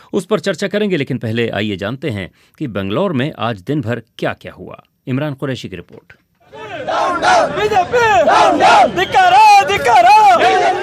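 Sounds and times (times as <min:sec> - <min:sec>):
speech: 0:00.1 - 0:06.2, 0:06.8 - 0:10.8
Janata Dal Secular party workers shouting slogans outside the Raj Bhavan in Bengaluru: 0:06.5 - 0:10.8.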